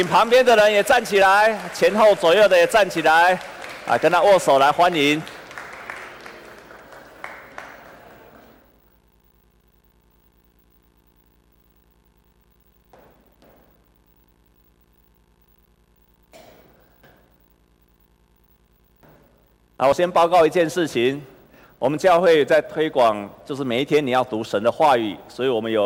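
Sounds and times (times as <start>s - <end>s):
speech: 0.0s - 5.4s, 19.8s - 25.8s
audience applauding to welcome newcomers: 0.0s - 8.7s.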